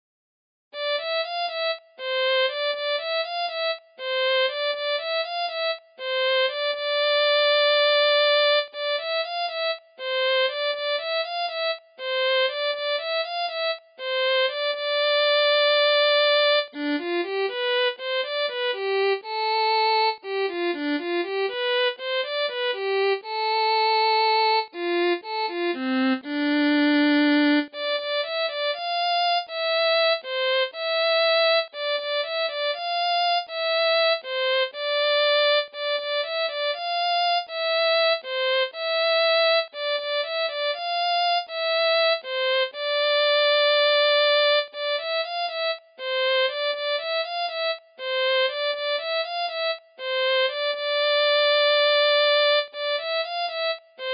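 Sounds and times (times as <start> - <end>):
violin: 0.8 - 54.1.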